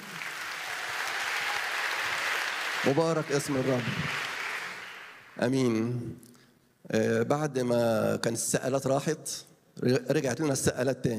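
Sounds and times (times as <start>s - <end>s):
congregation clapping to salute the Lord at a church gathering: 0.0s - 5.6s
speech: 2.8s - 4.3s, 5.4s - 11.1s.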